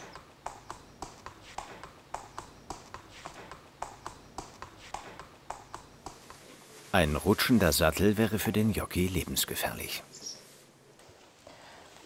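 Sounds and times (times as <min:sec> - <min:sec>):
racehorse hooves walking: 0:00.0 - 0:06.7
speech: 0:06.9 - 0:10.2.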